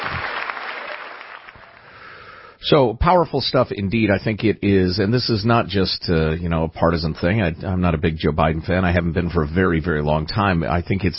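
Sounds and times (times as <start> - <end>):
large audience in Congress clapping for Zelensky: 0.0 - 2.0
speech: 2.6 - 11.1.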